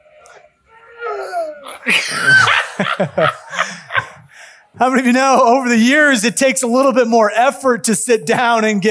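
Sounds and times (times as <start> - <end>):
young girl imitating her grandmother's groan: 1.0 - 2.6
speech: 1.9 - 3.8, 4.8 - 8.9
laughter: 1.9 - 4.3.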